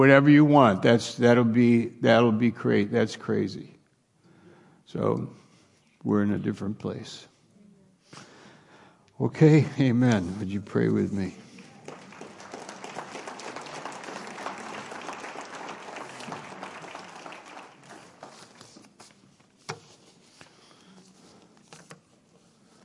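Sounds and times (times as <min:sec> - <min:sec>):
speech: 0:00.0 - 0:03.7, 0:04.9 - 0:05.4, 0:06.0 - 0:07.3, 0:09.2 - 0:11.4
audience clapping: 0:11.2 - 0:19.1.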